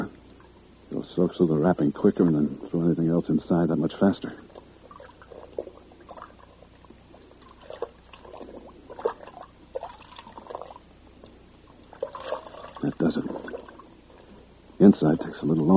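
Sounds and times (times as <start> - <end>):
speech: 1.4 - 4.5, 15.4 - 15.7
water sloshing and bubbling in a bucket: 4.4 - 14.5.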